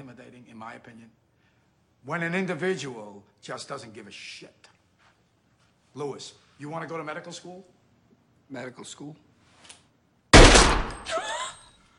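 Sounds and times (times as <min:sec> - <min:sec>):
speech: 0:00.0 - 0:01.2, 0:02.0 - 0:04.7, 0:06.0 - 0:07.7, 0:08.5 - 0:09.8
gunshot in a film scene: 0:10.4 - 0:11.1.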